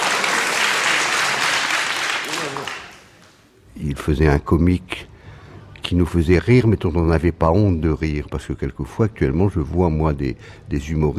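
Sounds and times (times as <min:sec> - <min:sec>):
applause: 0:00.0 - 0:03.4
speech: 0:03.8 - 0:05.1, 0:05.9 - 0:11.1.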